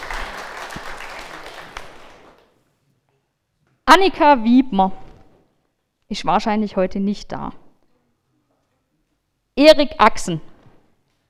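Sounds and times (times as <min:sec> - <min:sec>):
audience applause: 0:00.0 - 0:02.5
speech: 0:03.9 - 0:05.0, 0:06.1 - 0:07.6, 0:09.6 - 0:10.5.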